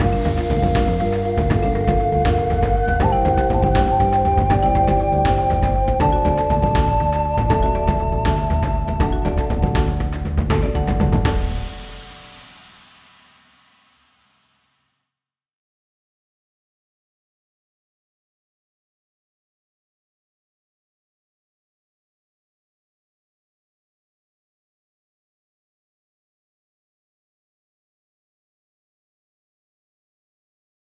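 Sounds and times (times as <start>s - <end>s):
boss win victory music: 0.0s - 12.6s.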